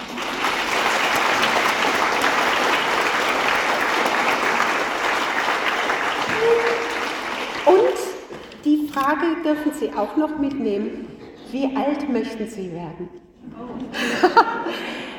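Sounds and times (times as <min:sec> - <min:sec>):
audience applauding: 0:00.0 - 0:08.5
speech: 0:09.1 - 0:15.1
laughter: 0:13.6 - 0:15.1.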